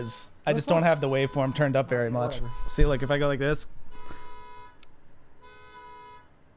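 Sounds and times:
speech: 0.0s - 4.2s
car alarm going off: 0.6s - 4.8s, 5.4s - 6.4s.

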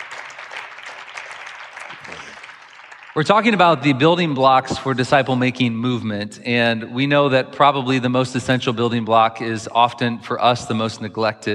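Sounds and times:
audience applause welcoming a guest at a faith talk on prayer and fasting: 0.0s - 3.8s
speech: 3.2s - 11.5s.

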